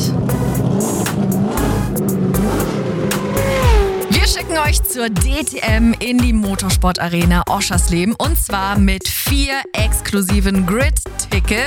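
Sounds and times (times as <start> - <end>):
race car engine revving: 0.0 - 6.6
speech: 4.7 - 11.6.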